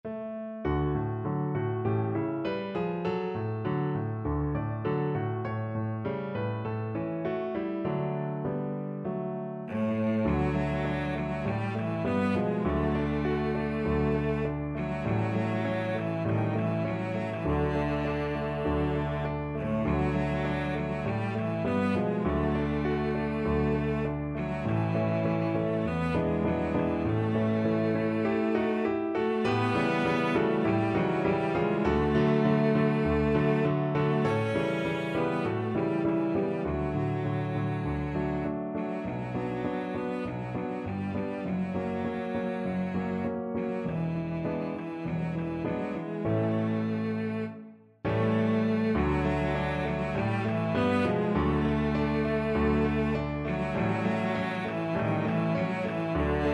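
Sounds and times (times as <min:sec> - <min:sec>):
violoncello: 0:00.0 - 0:56.5.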